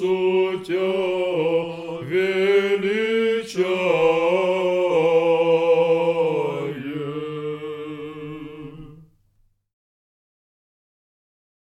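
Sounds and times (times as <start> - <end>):
chant in tone three: 0.0 - 9.2.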